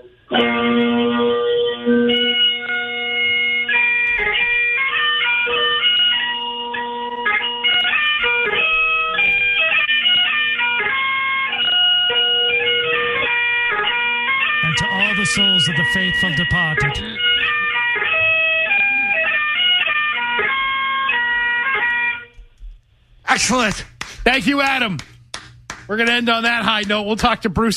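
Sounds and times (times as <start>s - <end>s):
bagpipes played over a tinny phone line: 0.4s - 22.3s
speech: 15.9s - 18.1s, 23.4s - 25.1s, 25.9s - 27.7s.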